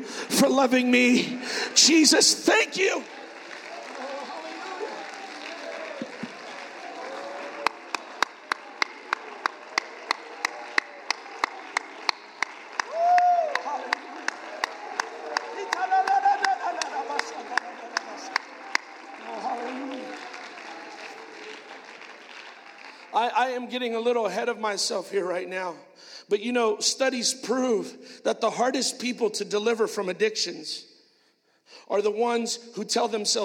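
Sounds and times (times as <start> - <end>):
speech: 0.0 - 3.2, 23.4 - 30.9, 31.7 - 33.4
audience clapping hands in praise: 0.4 - 23.8.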